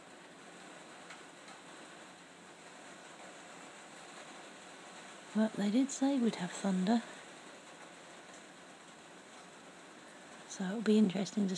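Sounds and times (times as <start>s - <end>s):
rain falling on a porch roof: 0.0s - 11.5s
speech: 5.4s - 7.2s, 10.6s - 11.5s.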